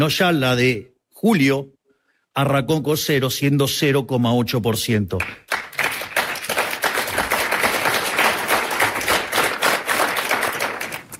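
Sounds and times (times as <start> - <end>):
speech: 0.0 - 1.8, 2.4 - 5.5
soft applause from an audience: 5.2 - 11.1.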